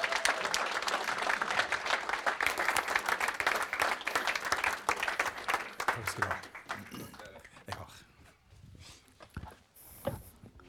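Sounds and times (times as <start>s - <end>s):
audience clapping: 0.0s - 8.0s
speech: 6.1s - 6.5s.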